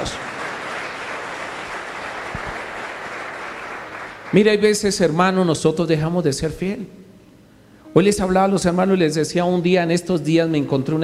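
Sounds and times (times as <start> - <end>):
audience applauding: 0.0 - 4.6
speech: 4.3 - 7.0, 7.9 - 11.0.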